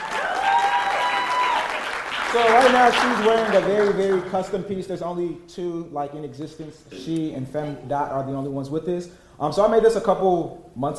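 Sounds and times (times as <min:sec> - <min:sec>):
audience applause: 0:00.0 - 0:04.3
speech: 0:02.3 - 0:10.9.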